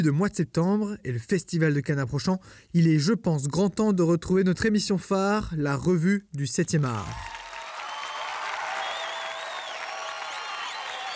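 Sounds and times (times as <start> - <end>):
speech: 0.0 - 7.4
applause sound effect: 7.1 - 11.1.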